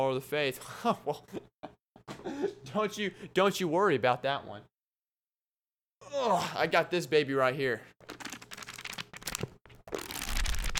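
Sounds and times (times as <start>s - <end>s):
speech: 0.0s - 1.5s, 2.2s - 4.7s, 6.1s - 8.2s
pages of a small Bible folding and rustling: 8.0s - 10.7s.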